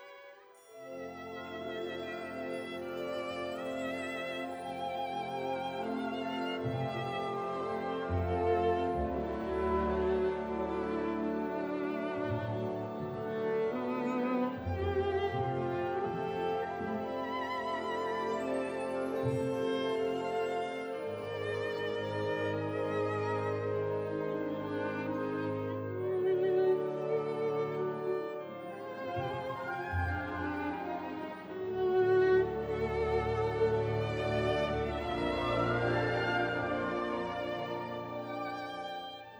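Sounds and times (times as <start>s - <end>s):
symphony orchestra playing: 0.0s - 39.3s.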